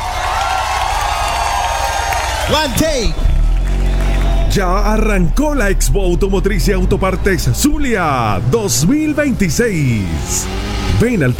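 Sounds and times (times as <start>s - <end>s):
applause and crowd cheering for a maestro: 0.0s - 6.1s
speech: 2.5s - 3.3s, 4.5s - 11.3s.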